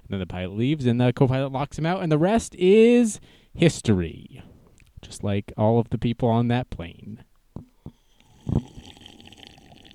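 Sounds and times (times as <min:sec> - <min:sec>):
speech: 0:00.1 - 0:07.3
sipping wine: 0:07.6 - 0:09.9.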